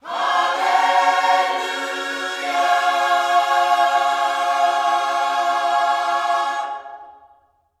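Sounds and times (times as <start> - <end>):
gospel singing: 0.0 - 7.6.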